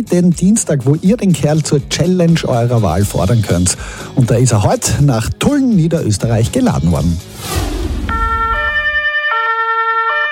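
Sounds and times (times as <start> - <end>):
speech: 0.0 - 7.8
low rumble: 7.2 - 9.0
fire engine two-tone siren: 8.1 - 10.3.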